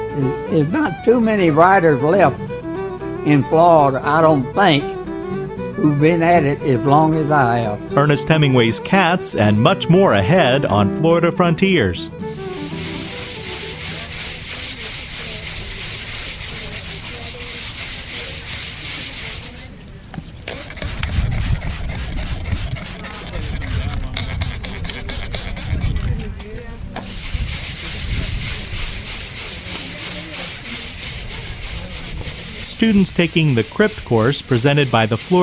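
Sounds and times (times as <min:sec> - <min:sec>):
speech: 0:00.2 - 0:02.6, 0:03.2 - 0:05.0, 0:05.8 - 0:12.7, 0:32.8 - 0:35.4
brush scrubbing a historic headstone: 0:12.3 - 0:19.7, 0:20.6 - 0:25.9, 0:27.0 - 0:35.4
steady bright hiss: 0:12.3 - 0:19.8, 0:27.0 - 0:35.4.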